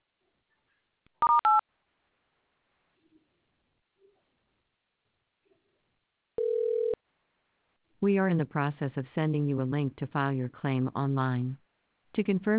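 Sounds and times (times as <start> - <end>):
telephone keypad tones: 1.2 - 1.6
speech: 8.0 - 11.6, 12.2 - 12.5.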